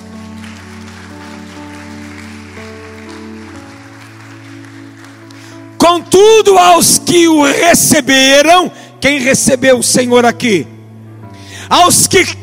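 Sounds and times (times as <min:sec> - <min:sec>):
crowd clapping: 0:00.0 - 0:05.8
speech: 0:06.0 - 0:10.8, 0:11.7 - 0:12.4.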